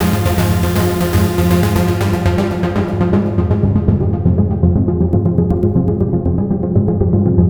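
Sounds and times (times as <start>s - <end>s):
energetic trance music: 0.0s - 7.4s.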